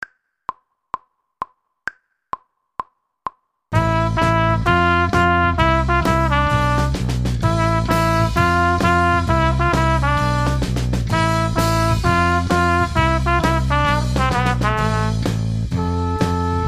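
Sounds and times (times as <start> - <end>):
trumpet: 3.8 - 16.6.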